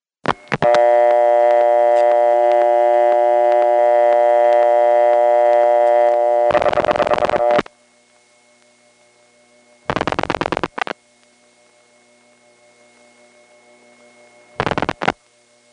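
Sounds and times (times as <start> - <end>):
telephone line-hunting connector switch purring: 0.2 - 7.7, 9.9 - 11.0, 14.6 - 15.2
telephone busy signal: 0.6 - 7.6.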